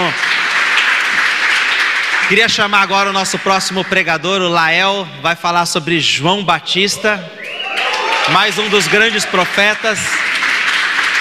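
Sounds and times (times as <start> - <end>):
audience applause: 0.0 - 4.1, 7.4 - 11.1
speech: 2.3 - 7.5, 8.3 - 10.3.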